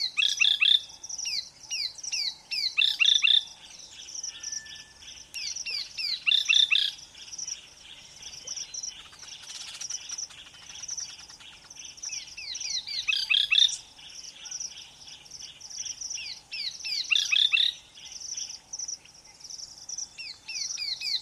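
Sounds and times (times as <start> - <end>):
busy high birdsong in the African bush: 0.0 - 21.2
steady insect buzz in the African bush: 0.0 - 21.2.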